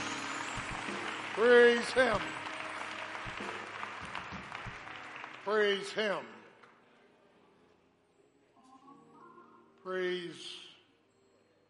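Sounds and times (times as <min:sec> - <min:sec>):
audience hand clapping: 0:00.0 - 0:06.3
speech: 0:01.4 - 0:02.4, 0:05.5 - 0:06.4, 0:09.8 - 0:10.6.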